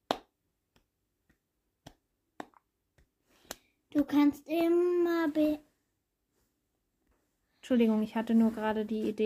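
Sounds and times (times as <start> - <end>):
hand clapping: 0.0 - 3.7
speech: 4.0 - 5.7, 7.7 - 9.2.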